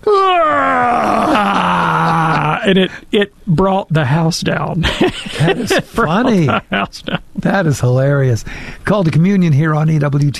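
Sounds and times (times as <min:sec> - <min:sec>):
voice imitating a child's loud yawn: 0:00.0 - 0:02.6
laughter: 0:01.4 - 0:02.7, 0:04.8 - 0:07.6
speech: 0:02.6 - 0:10.3.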